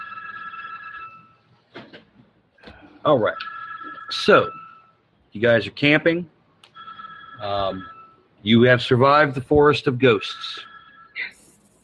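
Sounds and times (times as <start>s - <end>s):
telephone ringing with an electronic trill: 0.0s - 1.5s, 3.2s - 5.0s, 6.7s - 11.3s
speech: 3.0s - 3.5s, 4.1s - 4.6s, 5.4s - 6.4s, 7.4s - 11.3s.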